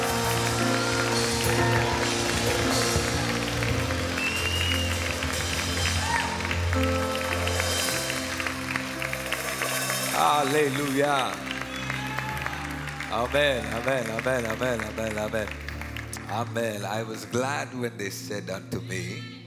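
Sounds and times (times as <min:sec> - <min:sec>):
audience clapping hands: 0:00.0 - 0:17.4
speech: 0:10.3 - 0:11.5, 0:13.2 - 0:15.6, 0:16.3 - 0:19.3.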